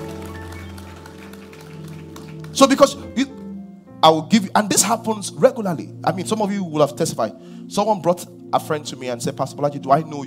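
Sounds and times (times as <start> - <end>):
audience clapping: 0.0 - 3.5
speech: 2.6 - 3.4, 4.0 - 10.2.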